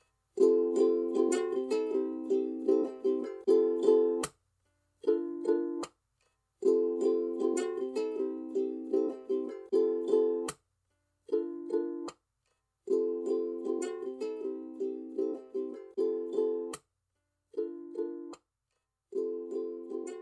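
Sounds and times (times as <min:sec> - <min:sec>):
clean ukulele: 0:00.4 - 0:04.4, 0:05.0 - 0:05.9, 0:06.6 - 0:10.6, 0:11.3 - 0:12.2, 0:12.8 - 0:16.8, 0:17.5 - 0:18.4, 0:19.1 - 0:20.1.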